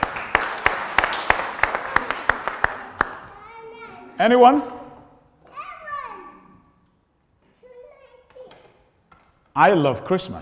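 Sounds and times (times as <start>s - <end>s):
audience clapping: 0.0s - 3.6s
speech: 4.2s - 4.8s, 9.6s - 10.4s.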